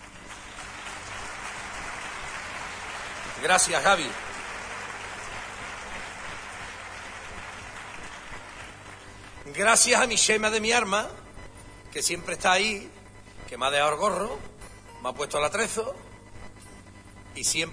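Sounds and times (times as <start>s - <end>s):
audience applause: 0.0s - 9.4s
speech: 3.4s - 4.2s, 9.6s - 11.2s, 11.9s - 16.0s, 17.4s - 17.7s.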